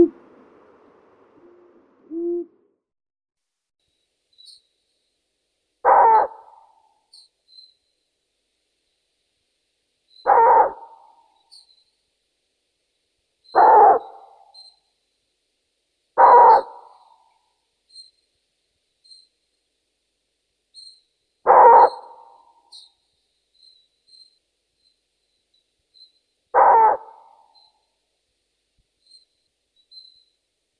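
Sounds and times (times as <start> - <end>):
Asio otus long-eared owl: 0.0 - 0.2, 1.4 - 2.6, 5.8 - 7.8, 10.2 - 11.9, 13.5 - 14.9, 16.2 - 18.1, 20.8 - 24.3, 26.0 - 27.8
nature sounds: 0.0 - 2.5, 3.9 - 5.2, 5.8 - 8.2, 9.9 - 19.8, 20.8 - 30.7.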